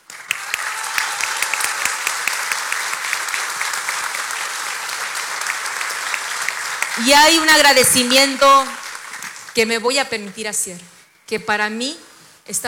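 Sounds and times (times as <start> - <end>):
audience applause: 0.0 - 9.9
speech: 7.0 - 8.8, 9.6 - 12.6.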